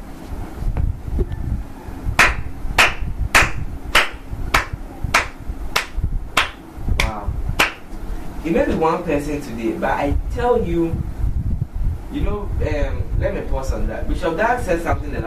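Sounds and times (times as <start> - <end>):
low rumbling hum: 0.0 - 15.2
audience rhythmic clapping: 2.2 - 8.0
speech: 8.4 - 11.1, 12.1 - 15.2.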